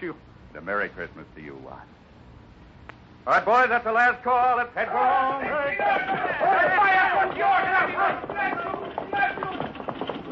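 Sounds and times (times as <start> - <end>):
speech: 0.1 - 2.0, 3.2 - 9.0
horse-drawn buckboard wagon hooves clip-clopping: 4.9 - 10.2.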